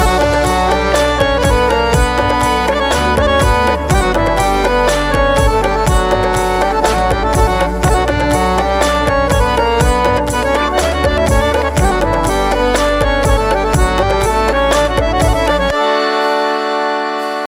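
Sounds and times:
Punjabi music ringtone: 0:00.0 - 0:17.4.

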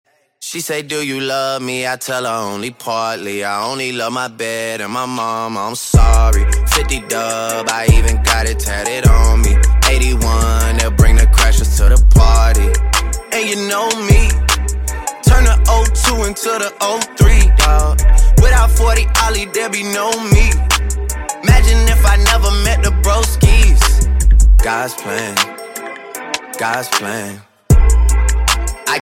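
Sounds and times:
English song ringtone: 0:06.0 - 0:29.0.

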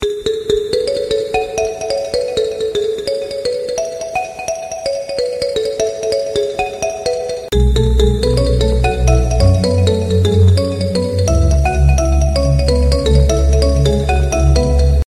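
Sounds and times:
Galaxy S5 epic ringtone: 0:00.1 - 0:15.0.

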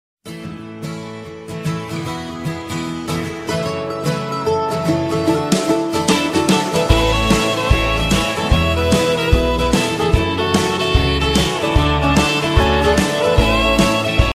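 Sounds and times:
country music ringtone: 0:00.5 - 0:14.3.

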